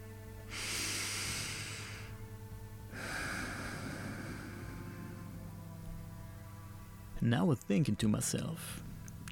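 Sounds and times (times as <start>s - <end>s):
eerie breathing from a room corner: 0.5s - 2.2s, 2.9s - 5.7s
speech: 7.2s - 9.3s.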